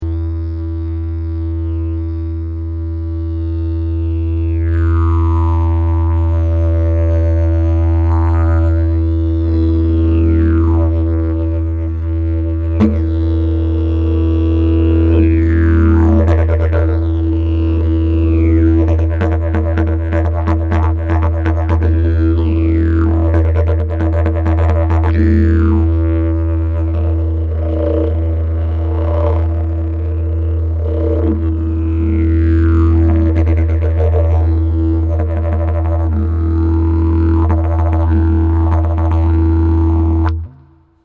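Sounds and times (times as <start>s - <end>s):
didgeridoo: 0.0s - 41.0s.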